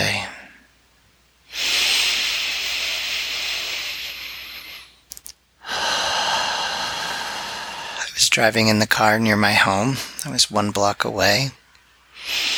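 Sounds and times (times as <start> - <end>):
deep lower belly breathing: 1.5 - 8.2, 12.1 - 12.5
speech: 8.3 - 11.6.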